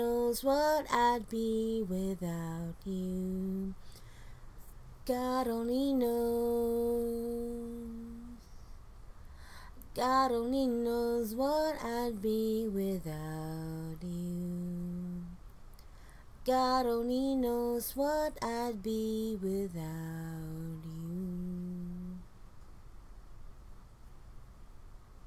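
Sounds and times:
a cappella cover singing: 0.0 - 8.6, 9.8 - 15.4, 16.4 - 22.3.

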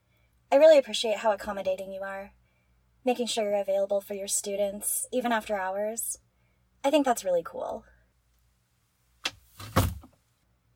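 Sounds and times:
speech: 0.5 - 2.4, 3.0 - 6.2, 6.8 - 7.9
door swinging shut: 9.6 - 10.1.

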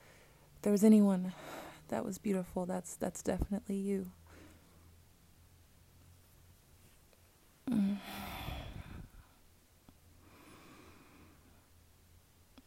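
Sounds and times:
speech: 0.6 - 4.2
person yawning: 7.7 - 8.7.

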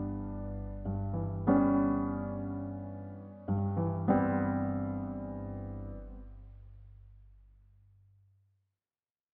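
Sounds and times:
simple piano piece: 0.0 - 6.5.

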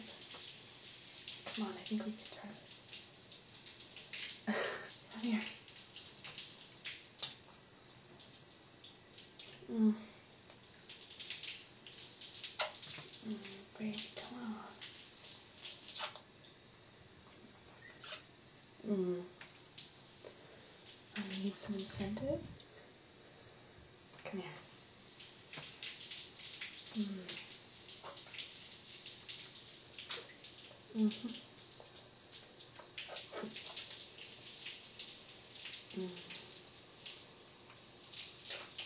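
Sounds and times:
shower water running: 0.0 - 38.8
speech: 1.6 - 2.7, 5.2 - 5.6.

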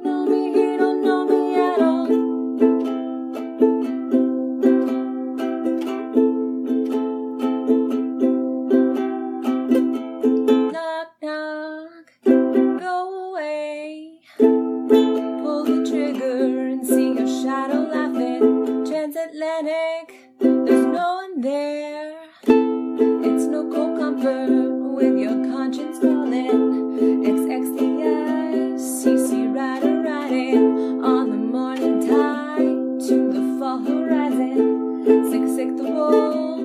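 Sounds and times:
person singing: 0.0 - 6.0, 7.7 - 36.6
ukulele played badly: 0.0 - 11.6, 12.2 - 13.0, 14.4 - 36.6.

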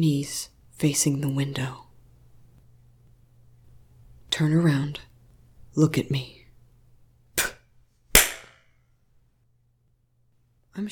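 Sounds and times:
speech: 0.0 - 1.8, 4.4 - 5.1, 5.8 - 6.4, 10.8 - 10.9
spit slap on skin: 7.4 - 7.6, 8.2 - 8.6.

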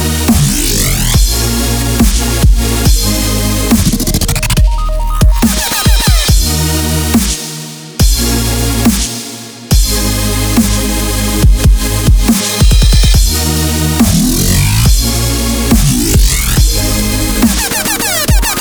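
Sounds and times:
instrumental EDM at 140 BPM: 0.1 - 18.5.

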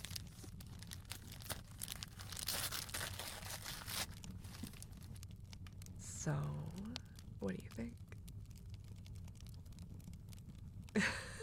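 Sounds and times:
gift wrapping paper tearing and crinkling as a couples card game is unwrapped: 0.0 - 5.1
low hum: 0.0 - 11.4
speech: 6.2 - 6.8, 7.4 - 8.1.

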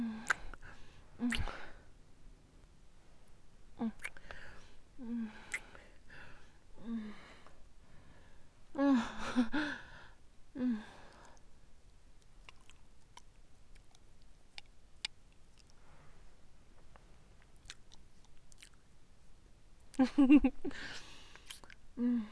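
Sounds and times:
breathy vocal sounds: 0.0 - 1.8, 3.8 - 11.4, 20.8 - 22.3
chewing chocolate: 12.2 - 15.8, 17.6 - 18.8.

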